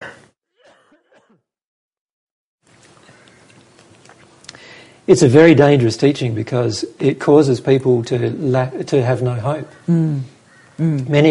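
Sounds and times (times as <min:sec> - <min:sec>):
throat clearing: 0:00.0 - 0:01.4
person coughing: 0:00.0 - 0:01.5
speech: 0:05.1 - 0:11.2.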